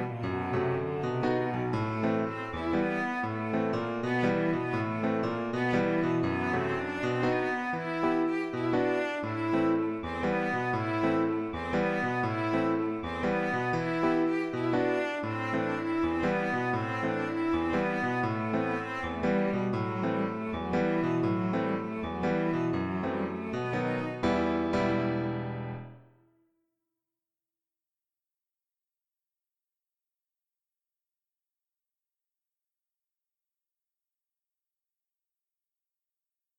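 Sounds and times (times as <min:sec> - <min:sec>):
emotional cello: 0:00.0 - 0:26.0
fortepiano: 0:00.0 - 0:26.4.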